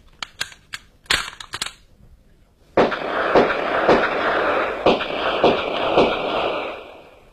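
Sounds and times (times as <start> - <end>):
dense loud noise: 2.8 - 7.3
pistol shots fired at a target: 2.8 - 7.3.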